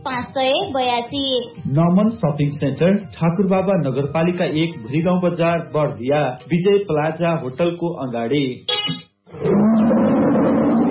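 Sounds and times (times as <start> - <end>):
speech: 0.1 - 9.6
tiger roaring in Bardiya: 9.3 - 10.8.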